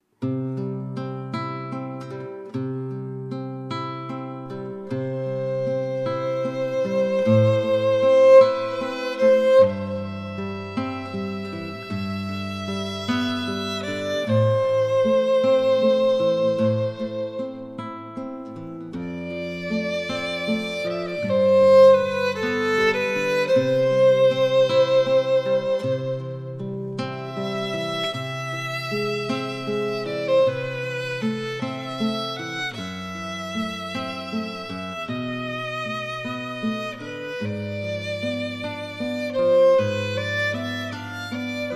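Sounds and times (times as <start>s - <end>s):
guitar: 0.0s - 41.7s
violin: 3.6s - 41.7s.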